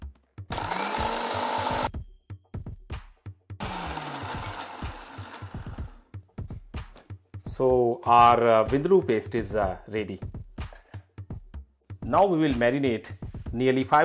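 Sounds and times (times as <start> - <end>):
electric grinder grinding vindaloo paste from turmeric powder and vinegar: 0.5 - 1.9, 3.6 - 6.0
speech: 7.6 - 10.4, 12.1 - 14.0.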